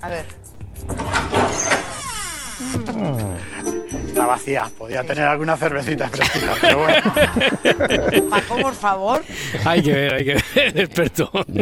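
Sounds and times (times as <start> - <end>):
speech: 0.0 - 1.7, 2.6 - 11.6
refrigerator door opening with a creak: 0.8 - 3.1
laughter: 6.0 - 11.6.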